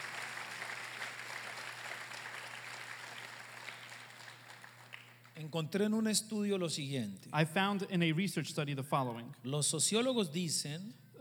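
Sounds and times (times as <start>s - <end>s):
audience applause: 0.0s - 5.4s
speech: 5.4s - 11.1s.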